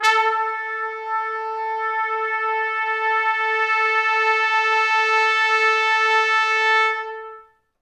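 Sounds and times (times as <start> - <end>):
pop brass note: 0.0 - 7.5.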